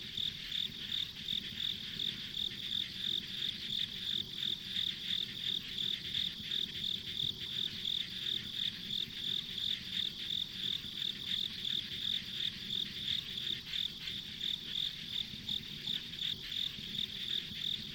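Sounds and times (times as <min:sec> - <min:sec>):
crickets or similar insects giving pulsed chirps: 0:00.0 - 0:17.9.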